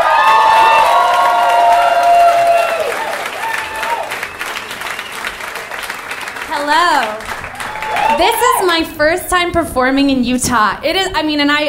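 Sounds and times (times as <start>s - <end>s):
audience applause welcoming a storyteller onto the stage: 0.0s - 8.8s
speech: 8.2s - 11.6s.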